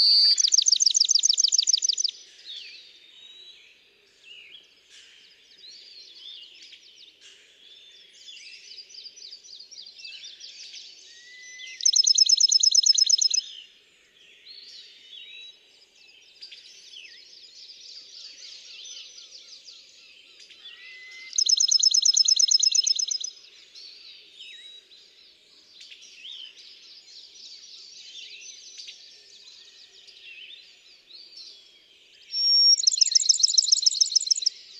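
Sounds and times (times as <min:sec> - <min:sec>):
speech: 0:00.0 - 0:00.6
Bachman's sparrow song: 0:00.0 - 0:02.2, 0:11.1 - 0:13.5, 0:20.6 - 0:23.3, 0:32.3 - 0:34.7
small birds singing: 0:00.0 - 0:34.7.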